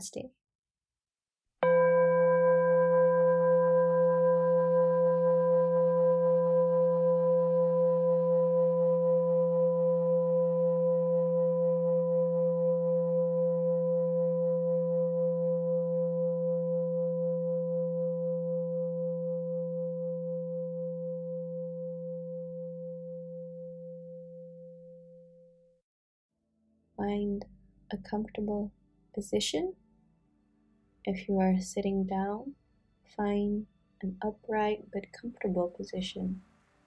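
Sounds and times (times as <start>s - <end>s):
speech: 0.0s - 0.4s, 27.1s - 29.8s, 31.0s - 36.5s
meditation bell ringing: 1.6s - 24.6s.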